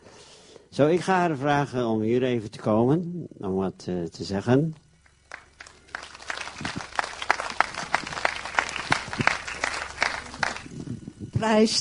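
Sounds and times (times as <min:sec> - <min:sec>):
speech: 0:00.8 - 0:04.8, 0:11.4 - 0:11.7
audience applause: 0:05.3 - 0:11.2.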